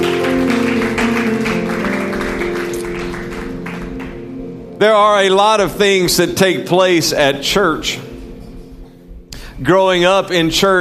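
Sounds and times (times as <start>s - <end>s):
audience hand clapping: 0.0s - 4.4s
speech: 4.8s - 8.1s, 9.6s - 10.7s.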